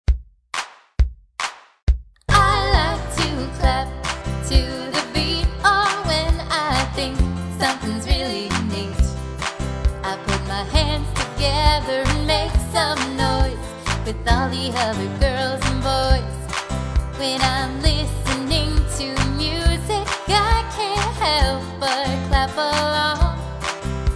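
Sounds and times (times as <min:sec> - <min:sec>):
song: 0:02.3 - 0:24.1.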